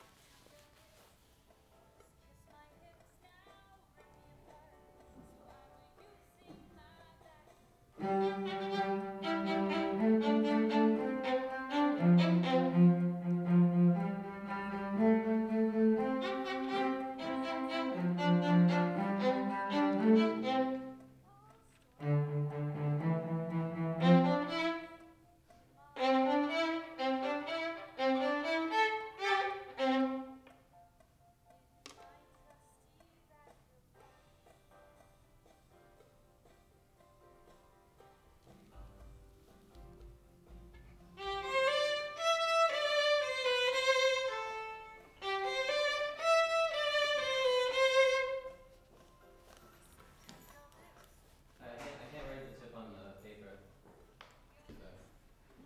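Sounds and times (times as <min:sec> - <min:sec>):
violin: 0:04.0 - 0:30.7, 0:38.4 - 0:50.8.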